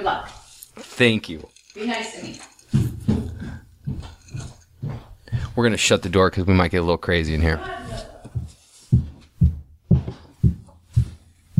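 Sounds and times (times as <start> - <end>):
speech: 0.0 - 2.9, 5.6 - 7.8
high heels climbing a staircase: 2.6 - 5.9, 7.8 - 11.5.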